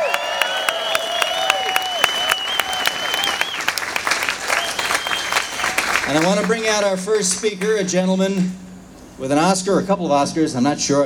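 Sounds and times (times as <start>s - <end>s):
whistle-like tones: 0.0s - 3.8s, 4.5s - 7.7s
audience applause: 0.0s - 8.6s
speech: 6.1s - 8.6s, 9.2s - 11.0s.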